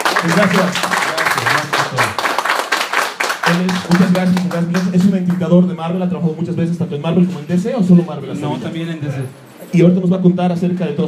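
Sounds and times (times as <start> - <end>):
audience applause welcoming a guest: 0.0 - 5.3
speech: 0.2 - 0.9, 3.5 - 11.0.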